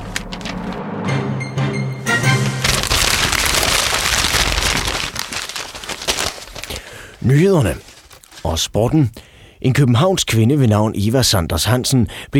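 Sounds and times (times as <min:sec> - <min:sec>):
rustling paper: 0:00.0 - 0:00.9, 0:02.2 - 0:08.7
speech: 0:07.2 - 0:12.3.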